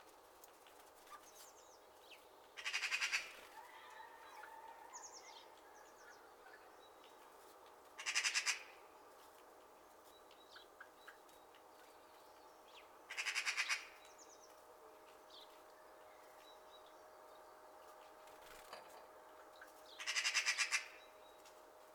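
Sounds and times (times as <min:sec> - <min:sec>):
magpie rattling chatter: 0:08.0 - 0:08.7, 0:13.1 - 0:13.9, 0:20.0 - 0:21.0.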